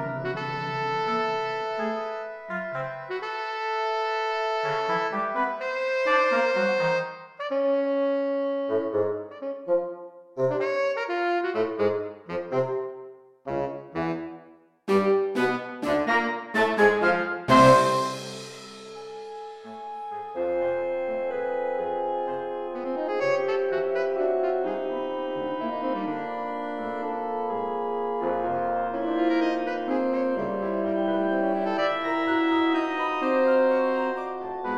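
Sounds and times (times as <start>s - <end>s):
saxophone band playing: 0.0s - 14.3s, 14.9s - 34.7s.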